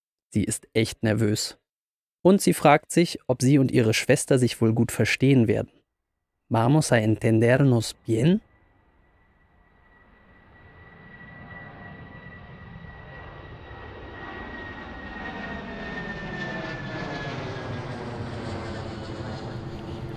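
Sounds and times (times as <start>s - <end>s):
speech: 0.3s - 1.6s, 2.2s - 5.8s, 6.5s - 8.5s
airplane flying: 8.4s - 20.1s.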